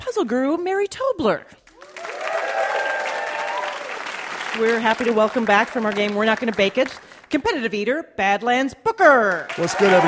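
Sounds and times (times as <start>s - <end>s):
speech: 0.2s - 1.6s, 4.6s - 10.0s
studio audience applause at a live comedy quiz show taping: 1.7s - 7.1s, 9.4s - 10.0s.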